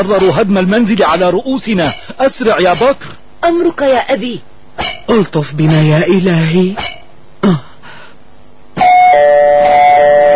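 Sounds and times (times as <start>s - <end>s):
speech: 0.0s - 7.7s
electronic doorbell chime: 8.8s - 10.3s.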